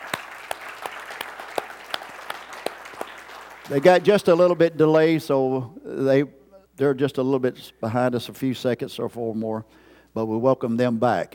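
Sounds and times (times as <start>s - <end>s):
church congregation applauding: 0.0s - 4.7s
speech: 3.7s - 11.3s.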